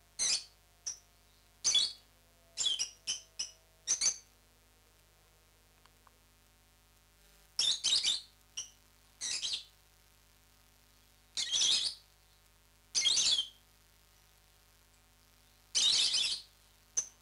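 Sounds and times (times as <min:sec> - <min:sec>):
lovebird chirps, parrots Agapornis: 0:00.2 - 0:02.0, 0:02.6 - 0:04.3, 0:07.6 - 0:09.7, 0:11.4 - 0:12.4, 0:13.0 - 0:13.6, 0:15.4 - 0:17.1.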